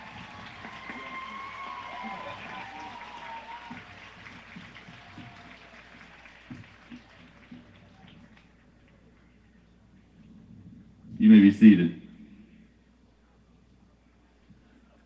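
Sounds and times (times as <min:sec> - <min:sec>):
audience applause: 0:00.0 - 0:09.1
speech: 0:11.3 - 0:12.0.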